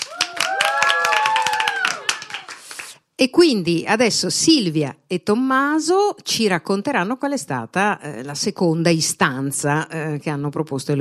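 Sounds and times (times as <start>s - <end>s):
group clapping: 0.0s - 3.1s
speech: 3.2s - 11.0s.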